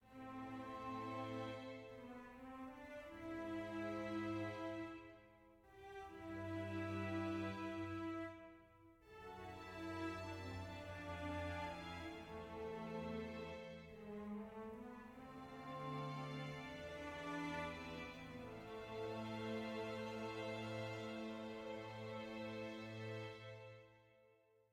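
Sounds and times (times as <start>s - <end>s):
sad soft music: 0.0s - 24.5s.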